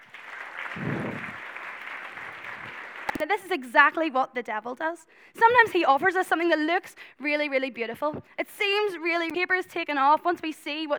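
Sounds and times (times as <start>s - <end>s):
crowd clapping: 0.0s - 3.3s
speech: 3.2s - 10.9s.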